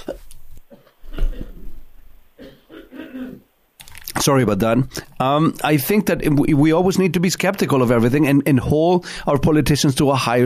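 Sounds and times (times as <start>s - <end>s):
person coughing: 0.0s - 1.7s, 2.4s - 3.5s
speech: 4.2s - 10.4s.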